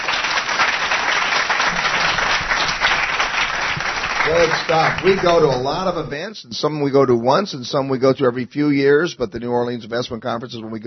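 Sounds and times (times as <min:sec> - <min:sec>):
crowd clapping: 0:00.0 - 0:06.1
speech: 0:04.3 - 0:10.8.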